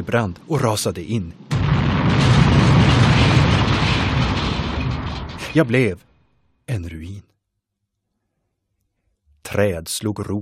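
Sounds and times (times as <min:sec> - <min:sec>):
speech: 0:00.0 - 0:02.6, 0:05.5 - 0:06.1, 0:06.7 - 0:07.3, 0:09.5 - 0:10.3
lightning strike thunder crash: 0:01.5 - 0:06.0.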